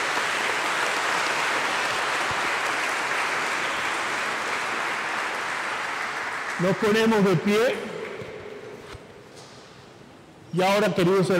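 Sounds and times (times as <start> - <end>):
audience applauding: 0.0 - 8.2
speech: 6.6 - 7.9, 10.5 - 11.3.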